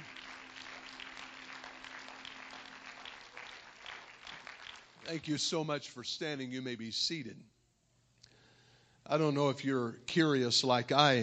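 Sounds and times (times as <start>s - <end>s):
audience clapping hands: 0.0s - 5.7s
speech: 5.1s - 7.5s, 9.1s - 11.2s.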